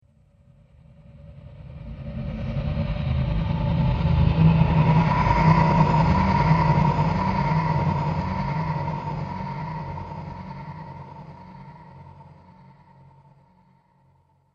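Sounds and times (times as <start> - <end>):
dark spectre ghost sound effect: 1.8 - 13.4.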